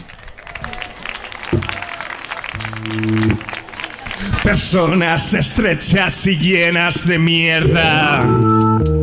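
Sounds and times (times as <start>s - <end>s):
audience applause: 0.0s - 5.8s
speech: 1.5s - 1.8s, 4.5s - 8.9s.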